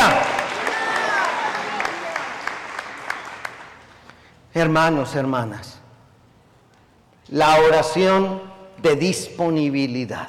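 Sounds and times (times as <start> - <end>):
audience applauding: 0.0 - 4.3
speech: 4.5 - 5.8, 7.3 - 10.2.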